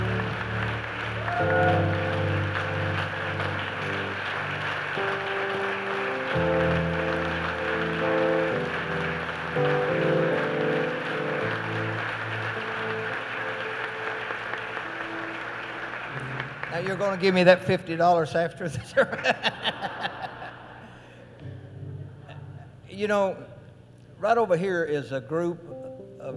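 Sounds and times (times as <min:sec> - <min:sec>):
audience clapping: 0:00.0 - 0:18.1, 0:19.2 - 0:21.0
sustained keyboard chords: 0:00.0 - 0:18.4, 0:21.4 - 0:26.3
speech: 0:17.0 - 0:19.8, 0:23.0 - 0:23.5, 0:24.2 - 0:25.7
laughter: 0:18.7 - 0:21.1.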